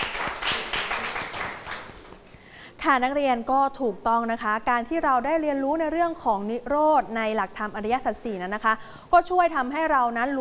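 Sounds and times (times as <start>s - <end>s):
classmates clapping for a student in a classroom: 0.0s - 2.3s
speech: 2.8s - 10.4s.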